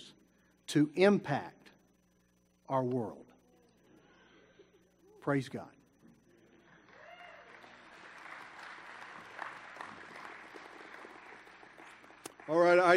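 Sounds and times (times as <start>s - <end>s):
speech: 0.7s - 1.6s, 2.7s - 3.3s, 5.2s - 5.8s, 12.5s - 12.9s
cheers: 6.9s - 10.4s
audience applause: 6.9s - 12.9s.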